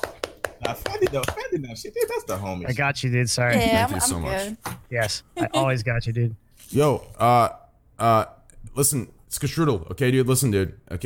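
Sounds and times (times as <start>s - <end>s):
hand claps: 0.0s - 1.5s
speech: 0.7s - 11.0s.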